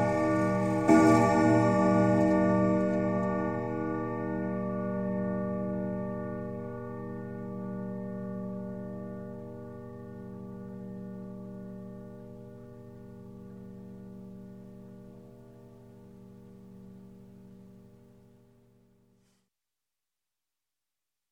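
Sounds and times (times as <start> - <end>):
grandfather clock chime striking: 0.0 - 7.8.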